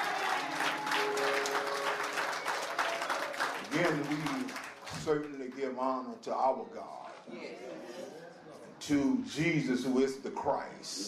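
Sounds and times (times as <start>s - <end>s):
audience hand clapping: 0.0s - 5.6s
speech: 3.7s - 11.0s.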